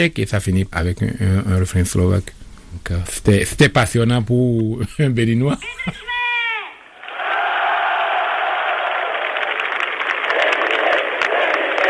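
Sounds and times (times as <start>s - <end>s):
speech: 0.0s - 6.1s
huge crowd cheering at a rally: 6.1s - 11.8s.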